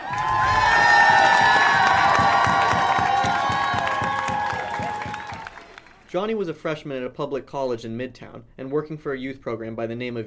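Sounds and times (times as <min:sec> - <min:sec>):
high-pitched screams and shouts: 0:00.0 - 0:05.7
graduating class cheering: 0:00.0 - 0:06.1
rapid continuous clapping: 0:00.0 - 0:06.2
speech: 0:06.2 - 0:10.2.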